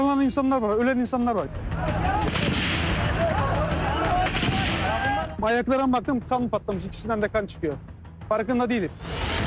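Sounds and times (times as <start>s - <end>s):
speech: 0.2s - 2.6s, 5.4s - 9.3s
gunfire and artillery shots: 2.2s - 3.3s, 4.1s - 5.0s.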